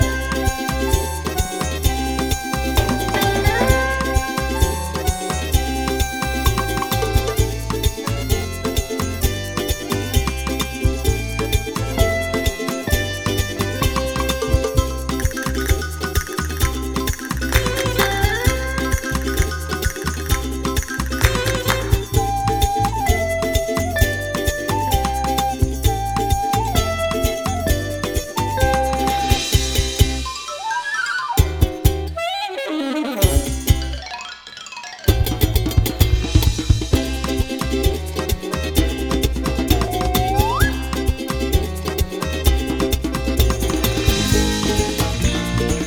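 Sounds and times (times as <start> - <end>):
music loop: 0.0 - 45.8.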